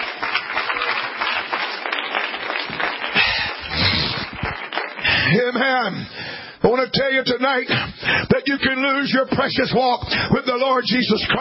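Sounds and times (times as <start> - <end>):
audience clapping: 0.0 - 5.9
speech: 6.8 - 11.3.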